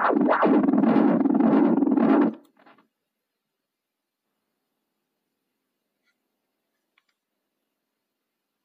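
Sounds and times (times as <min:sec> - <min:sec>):
echoing oscillation build-up: 0:00.0 - 0:02.4.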